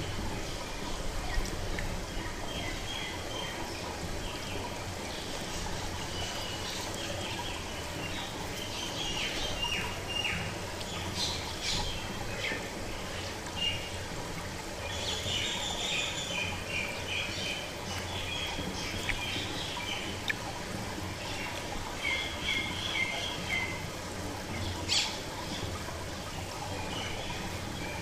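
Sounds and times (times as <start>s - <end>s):
lotus pond soundscape: 0.0s - 27.9s.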